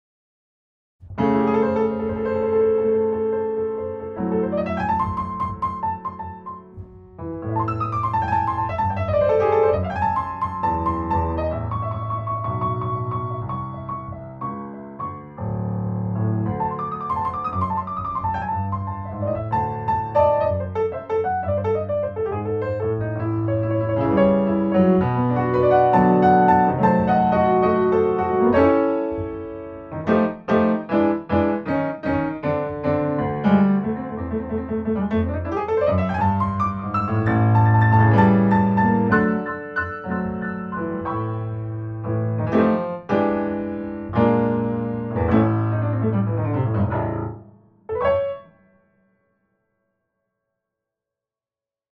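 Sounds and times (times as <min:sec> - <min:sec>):
blues music: 0:01.1 - 0:47.4.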